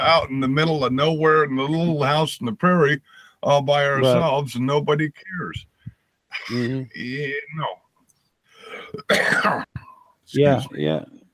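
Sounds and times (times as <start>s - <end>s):
speech: 0.0s - 5.7s, 6.3s - 7.8s, 8.9s - 9.7s, 10.3s - 11.2s
rough breathy coughing: 4.0s - 4.3s, 6.3s - 7.7s, 8.6s - 10.8s
voiced rumbling throat clearing: 6.3s - 7.0s, 8.7s - 10.0s.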